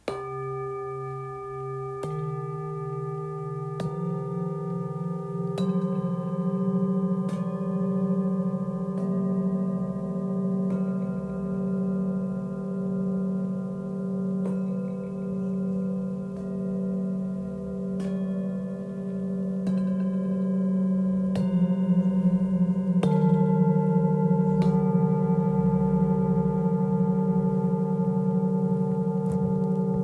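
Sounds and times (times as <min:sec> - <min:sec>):
Tibetan singing bowls: 0:00.0 - 0:30.0.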